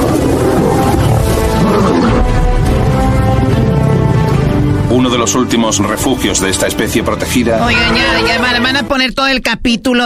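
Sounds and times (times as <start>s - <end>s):
lion roaring: 0.0s - 4.8s
speech: 5.0s - 10.0s.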